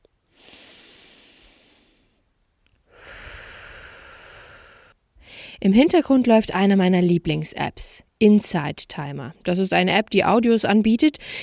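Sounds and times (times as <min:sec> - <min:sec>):
slow meditative breathing: 0:00.3 - 0:02.2, 0:02.8 - 0:05.6
speech: 0:05.6 - 0:11.4.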